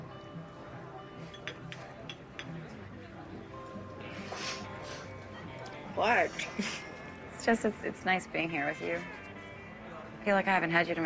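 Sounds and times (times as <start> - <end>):
cutlery clinking against dishes as diners eat chicken fried steak in a diner: 1.2 - 2.7
speech: 6.0 - 9.2, 10.2 - 11.0.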